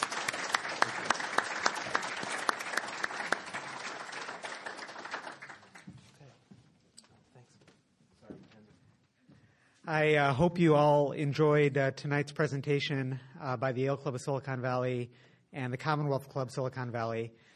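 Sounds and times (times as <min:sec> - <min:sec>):
audience applause: 0:00.0 - 0:05.9
speech: 0:09.9 - 0:17.5.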